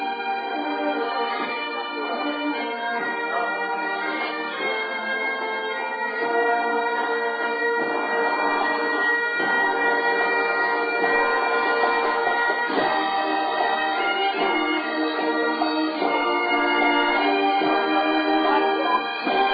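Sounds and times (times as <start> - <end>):
bagpipes: 0.0 - 19.5.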